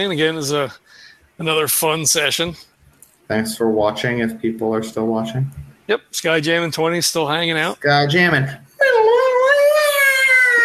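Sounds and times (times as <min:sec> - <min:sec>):
speech: 0:00.0 - 0:02.7, 0:03.3 - 0:08.6
eagle scream sound effect: 0:08.8 - 0:10.6.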